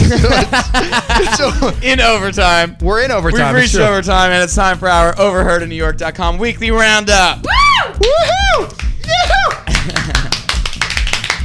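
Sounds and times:
laughter: 0.0 - 1.8, 9.1 - 10.5
speech: 0.1 - 10.0
studio hand clapping: 8.0 - 11.4.

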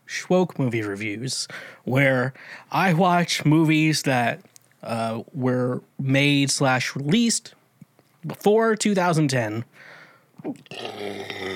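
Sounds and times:
speech: 0.3 - 7.6, 8.2 - 11.5
burp from drinking seltzer: 10.5 - 11.5.

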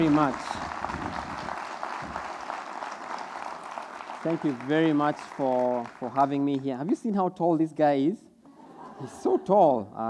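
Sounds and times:
speech: 0.0 - 0.6, 4.2 - 8.3, 9.0 - 10.0
audience applause welcoming a guest speaker from Nairobi, Kenya: 0.0 - 6.6
laughter: 8.5 - 9.8.

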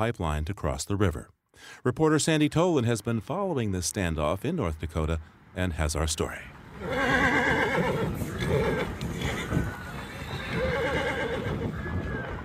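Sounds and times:
speech: 0.0 - 8.0
horses neighing and whinnying: 6.8 - 12.0
horse hooves clopping: 6.8 - 12.4.

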